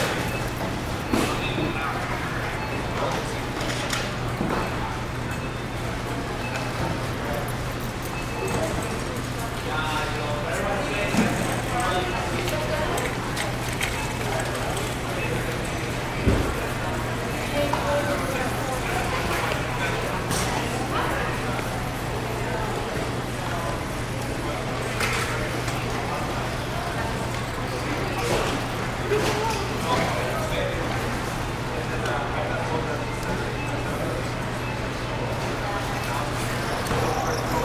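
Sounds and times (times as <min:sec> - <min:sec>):
store warehouse ambience: 0:00.0 - 0:37.6.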